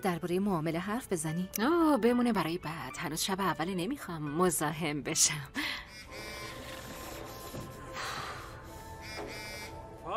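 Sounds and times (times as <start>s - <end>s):
speech: 0.0s - 5.8s
phone buzzing: 6.0s - 7.4s, 8.7s - 10.0s.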